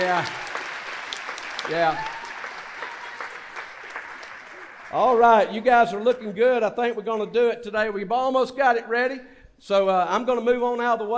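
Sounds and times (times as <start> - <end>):
speech: 0.0 - 0.5, 1.6 - 2.2, 4.9 - 11.1
audience applause: 0.0 - 5.9.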